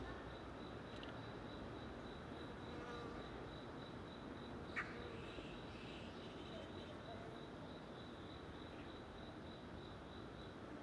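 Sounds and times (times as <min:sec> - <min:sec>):
cricket chirping: 0:00.2 - 0:10.7.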